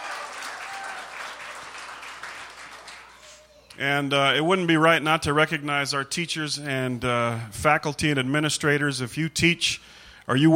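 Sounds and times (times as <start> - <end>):
audience applause: 0.0 - 3.3
speech: 3.8 - 10.5.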